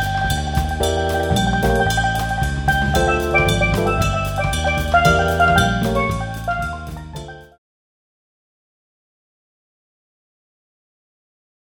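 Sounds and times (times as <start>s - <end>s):
quartet playing: 0.0s - 7.3s.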